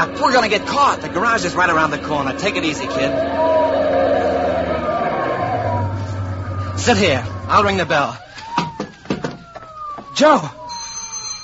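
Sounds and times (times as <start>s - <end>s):
speech: 0.0s - 4.2s, 6.8s - 8.2s, 10.2s - 10.6s
vehicle engine rumble: 0.0s - 10.1s
police siren wailing: 0.0s - 11.4s.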